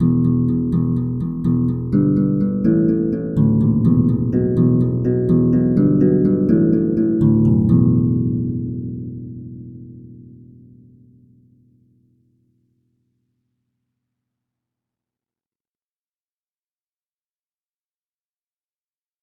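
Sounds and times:
harp bass notes: 0.0 - 10.8.

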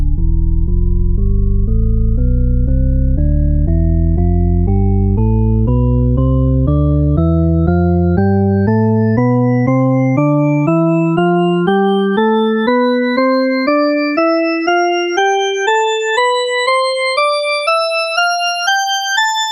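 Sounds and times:
drawbar organ playing a scale: 0.2 - 19.4.

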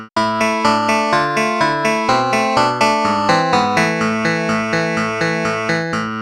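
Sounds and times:
clavinet: 0.2 - 6.1.

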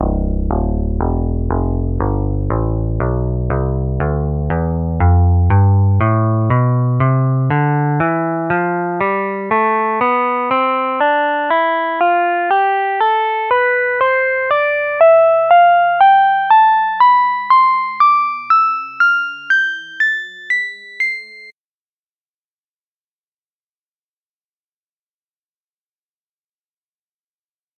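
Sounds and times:
jazz guitar scale: 0.0 - 21.5.

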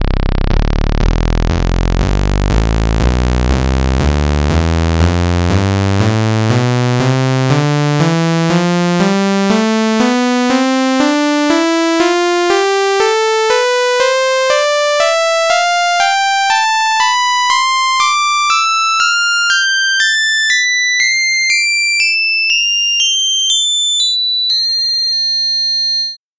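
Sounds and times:
bass lead playing a scale: 0.0 - 26.2.

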